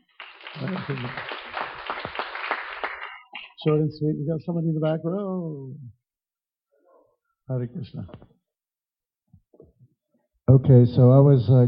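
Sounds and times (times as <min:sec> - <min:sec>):
audience clapping: 0:00.0 - 0:03.7
speech: 0:00.6 - 0:01.4, 0:03.6 - 0:06.0, 0:07.5 - 0:08.3, 0:10.5 - 0:11.6.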